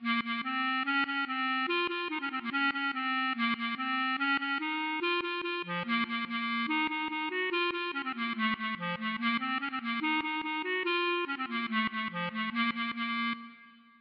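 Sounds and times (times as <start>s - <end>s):
klezmer music: 0.0s - 13.8s.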